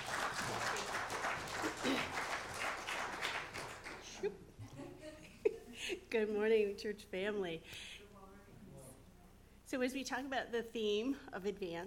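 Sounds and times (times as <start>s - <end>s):
audience applause: 0.0s - 4.2s
speech: 6.1s - 7.9s, 9.7s - 11.8s.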